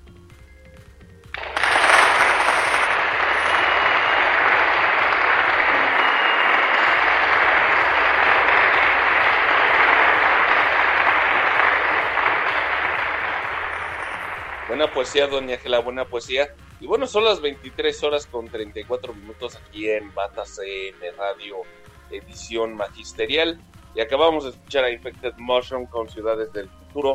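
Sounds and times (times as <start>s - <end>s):
audience applause: 1.4s - 15.6s
speech: 14.9s - 27.1s.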